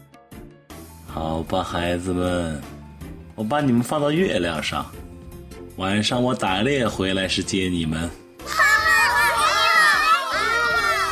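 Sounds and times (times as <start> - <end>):
speech: 1.2 - 2.8, 3.4 - 5.1, 5.8 - 8.6
children cheering: 8.4 - 11.1.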